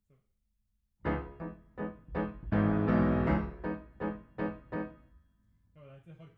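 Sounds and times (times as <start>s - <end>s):
piano: 1.0s - 5.2s.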